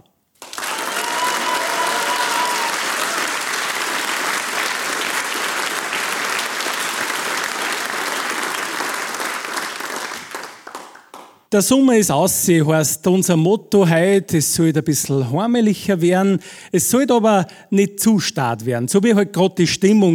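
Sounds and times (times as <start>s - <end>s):
audience applause: 0.4s - 11.4s
speech: 11.5s - 20.1s.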